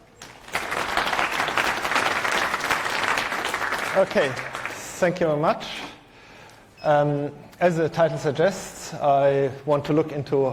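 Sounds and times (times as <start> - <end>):
conference audience applause welcoming a speaker to the lightning talks: 0.2 - 5.0
speech: 4.0 - 5.9, 6.8 - 10.5.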